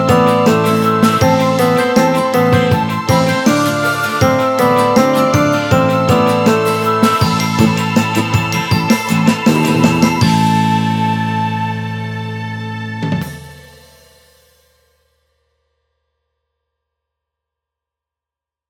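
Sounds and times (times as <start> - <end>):
orchestra playing: 0.0 - 11.4
piano: 0.0 - 13.6.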